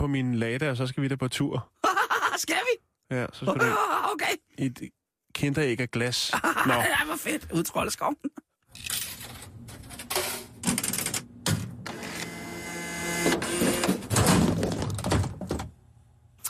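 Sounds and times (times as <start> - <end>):
speech: 0.1 - 1.8, 2.4 - 9.0
vending machine dispensing chewing gum: 8.7 - 15.8.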